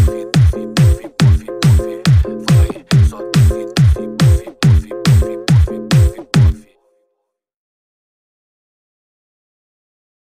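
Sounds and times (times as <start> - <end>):
pancadao funk beat: 0.0 - 6.6.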